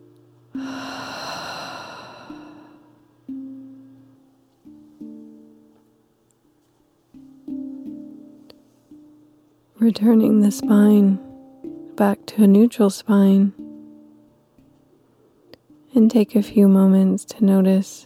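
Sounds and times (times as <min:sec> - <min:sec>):
soft sustained tones: 0:00.0 - 0:18.0
deep breath during a guided stretching exercise: 0:00.6 - 0:03.0
speech: 0:09.8 - 0:11.2, 0:12.0 - 0:13.6, 0:16.0 - 0:18.0.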